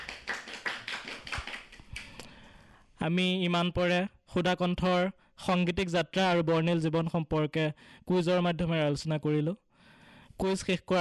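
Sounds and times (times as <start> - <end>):
scattered hand clapping from a small quiz audience: 0.0 - 2.3
speech: 3.0 - 9.6, 10.4 - 10.9.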